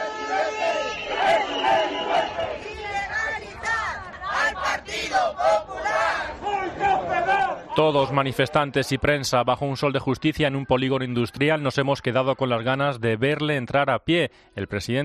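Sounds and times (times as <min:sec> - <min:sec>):
crowd of protesters shouting: 0:00.0 - 0:07.8
speech: 0:07.8 - 0:15.0.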